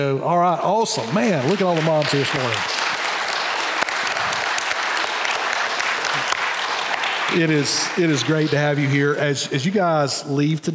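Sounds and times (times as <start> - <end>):
speech: 0.0 - 2.9, 7.3 - 10.7
audience applause: 0.8 - 9.2.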